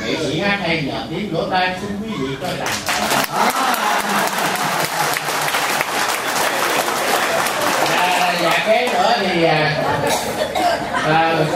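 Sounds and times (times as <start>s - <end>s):
speech: 0.3s - 5.2s, 8.2s - 11.5s
laughter: 2.1s - 8.6s, 9.6s - 11.5s
audience applause: 2.6s - 9.0s.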